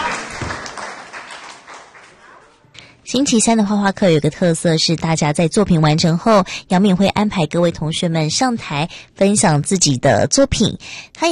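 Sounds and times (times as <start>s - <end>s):
small group clapping: 0.0s - 2.7s
speech: 3.1s - 11.3s.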